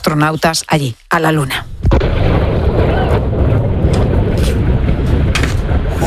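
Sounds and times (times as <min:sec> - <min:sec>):
speech: 0:00.0 - 0:02.4
rocket explosion at Cape Canaveral Space Station: 0:01.7 - 0:06.0.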